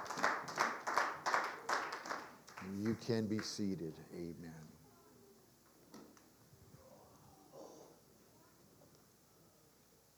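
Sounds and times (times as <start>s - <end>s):
audience hand clapping: 0.0s - 4.2s
speech: 2.7s - 4.8s.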